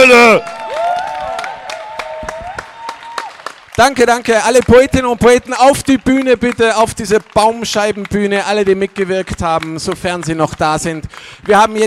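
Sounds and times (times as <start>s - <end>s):
crowd cheering and whistling: 0.0s - 3.4s
speech: 0.1s - 0.6s, 3.8s - 11.8s
audience applause: 0.3s - 11.8s.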